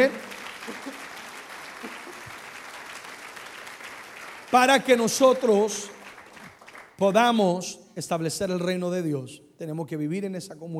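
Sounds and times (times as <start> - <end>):
audience applauding: 0.0 - 7.0
speech: 4.5 - 6.0, 7.0 - 10.7.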